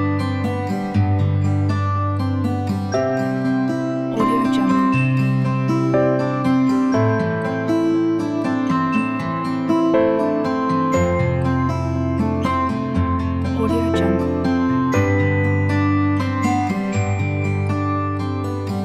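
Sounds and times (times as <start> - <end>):
acoustic music loop: 0.0 - 18.8.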